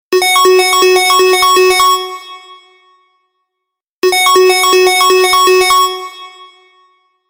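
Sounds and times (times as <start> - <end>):
loud ringtone: 0.2 - 2.8, 4.0 - 7.2.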